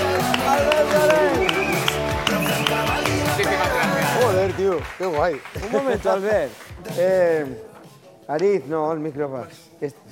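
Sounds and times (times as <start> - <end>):
audience applause: 0.0 - 6.8
speech: 4.8 - 7.7, 8.3 - 10.1.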